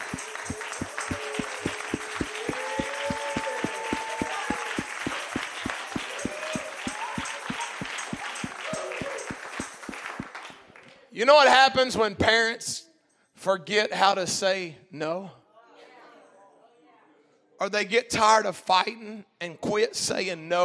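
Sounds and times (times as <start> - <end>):
audience including kids clapping in rhythm: 0.0 - 10.9
speech: 11.2 - 12.8, 13.4 - 15.4, 17.6 - 20.6.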